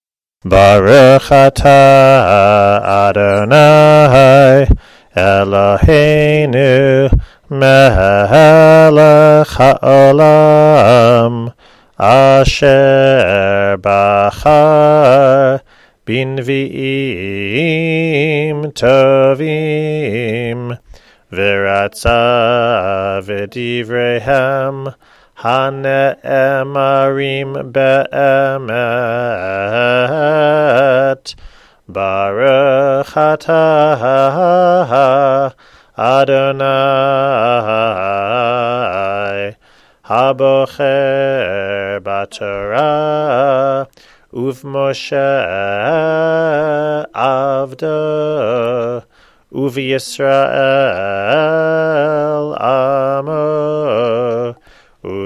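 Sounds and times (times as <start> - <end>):
person chanting a blessing before haftarah in a lower key: 0.5 - 31.3, 31.9 - 55.2.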